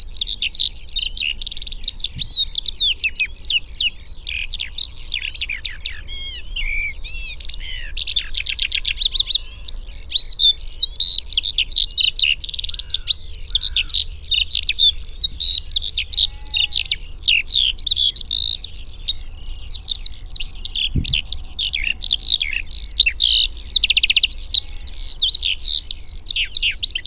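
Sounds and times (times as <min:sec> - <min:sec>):
Eurasian skylark song: 0:00.0 - 0:27.0.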